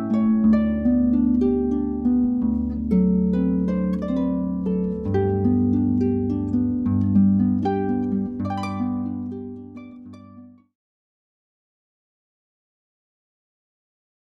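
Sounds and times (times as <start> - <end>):
harp solo: 0.0 - 10.6.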